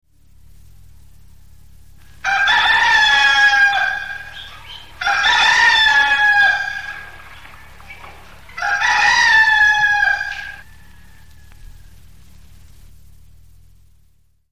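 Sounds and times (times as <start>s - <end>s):
rooster ringtone: 2.0s - 11.8s.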